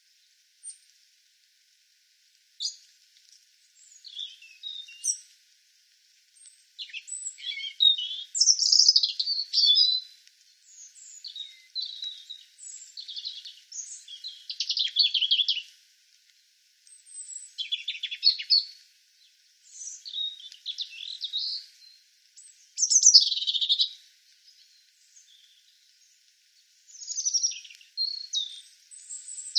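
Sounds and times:
European robin song: 0:03.8 - 0:05.2, 0:06.4 - 0:15.7, 0:16.9 - 0:29.5.

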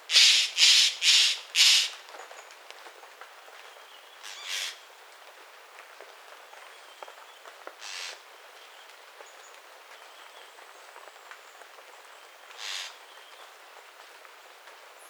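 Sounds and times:
bird giving harsh raspy squawks: 0:00.1 - 0:02.0, 0:12.6 - 0:13.0.

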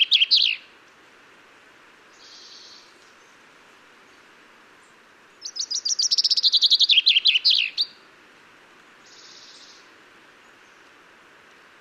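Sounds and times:
common chaffinch Fringilla coelebs singing: 0:00.0 - 0:00.7, 0:02.1 - 0:03.4, 0:04.1 - 0:08.0, 0:09.0 - 0:10.9.

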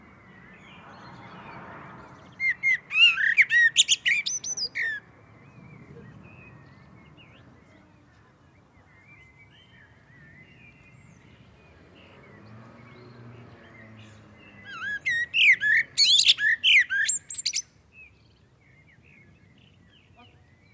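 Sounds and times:
common blackbird Turdus merula song: 0:00.0 - 0:20.7.

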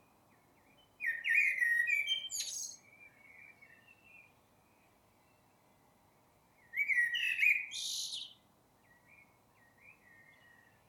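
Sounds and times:
Eurasian blackbird Turdus merula singing mellow fluting phrases: 0:00.8 - 0:04.2, 0:06.7 - 0:08.4.

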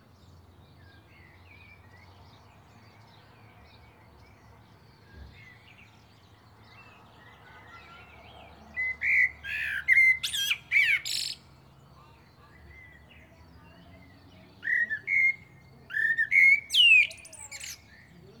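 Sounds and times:
common blackbird (Turdus merula) song: 0:00.0 - 0:18.3.

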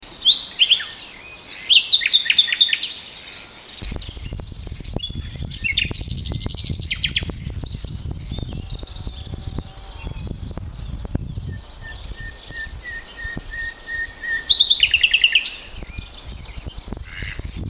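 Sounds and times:
common nightingale singing: 0:00.0 - 0:17.6
low rumble: 0:03.8 - 0:13.5.

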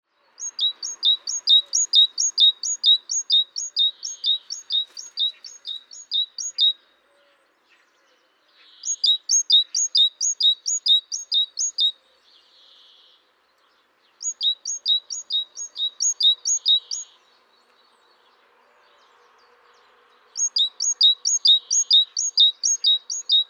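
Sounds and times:
great tit singing: 0:00.4 - 0:06.9, 0:08.7 - 0:17.5, 0:20.4 - 0:23.4.

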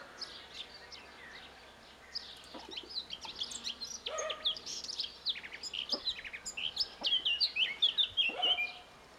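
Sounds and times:
Eurasian blackcap song: 0:02.3 - 0:08.8.

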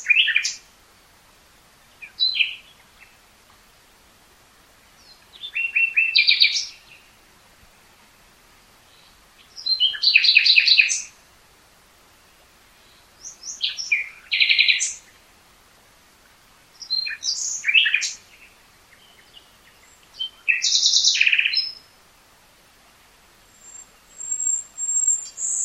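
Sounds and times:
common nightingale singing: 0:00.0 - 0:00.7, 0:01.9 - 0:03.2, 0:04.9 - 0:07.2, 0:08.8 - 0:11.2, 0:12.8 - 0:15.2, 0:16.7 - 0:22.0, 0:23.4 - 0:25.6.

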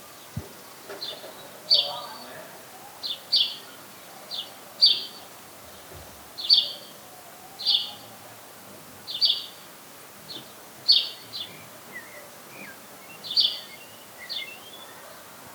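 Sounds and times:
House sparrow (Passer domesticus) chirping: 0:01.0 - 0:05.2, 0:06.4 - 0:06.9, 0:09.1 - 0:09.6, 0:10.3 - 0:15.0.

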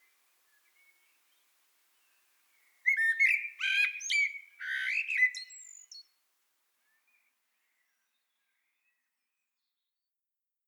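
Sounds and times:
common blackbird singing: 0:02.9 - 0:06.1.

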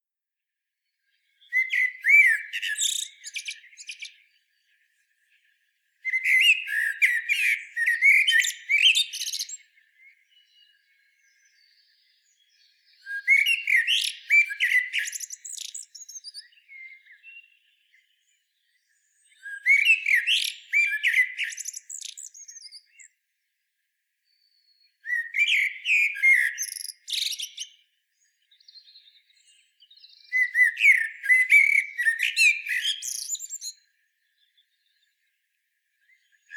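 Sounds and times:
Eurasian blackbird singing: 0:01.2 - 0:23.2, 0:24.2 - 0:35.4, 0:36.0 - 0:36.5.

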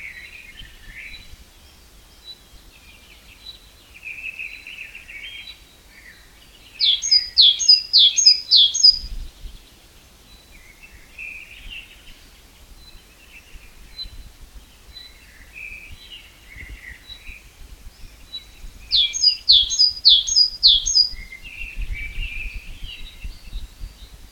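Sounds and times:
great tit song: 0:06.7 - 0:09.2, 0:16.6 - 0:24.0.

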